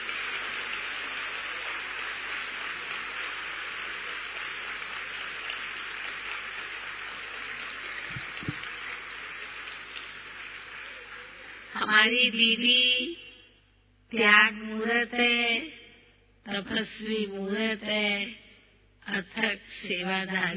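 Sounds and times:
audience applause: 0.0s - 11.8s
speech: 11.9s - 13.2s, 14.1s - 15.8s, 16.5s - 18.4s, 19.1s - 20.5s.

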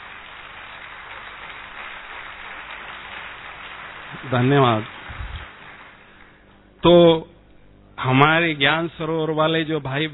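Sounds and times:
audience applause: 0.0s - 6.5s
speech: 4.1s - 5.0s, 6.8s - 7.3s, 8.0s - 10.1s.

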